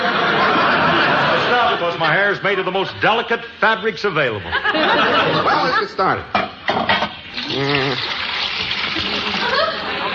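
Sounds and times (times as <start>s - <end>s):
laughter: 0.0s - 2.7s, 4.2s - 6.3s, 8.8s - 10.1s
speech: 2.0s - 8.2s
liquid dye poured into boiling water: 7.2s - 9.8s
voice murmuring: 7.4s - 8.1s.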